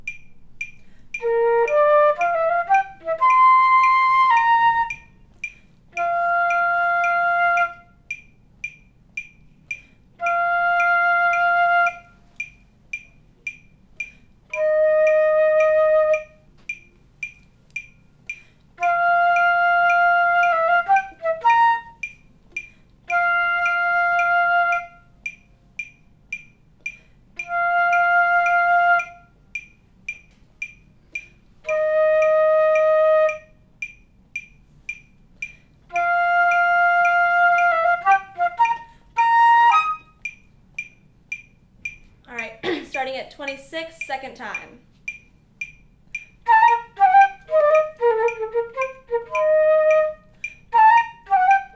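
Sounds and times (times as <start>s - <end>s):
flute: 1.2s - 5.3s, 5.9s - 8.2s, 10.2s - 12.5s, 14.5s - 16.6s, 18.8s - 22.2s, 23.1s - 25.3s, 27.4s - 29.4s, 31.6s - 33.7s, 35.9s - 40.4s, 46.4s - 51.7s.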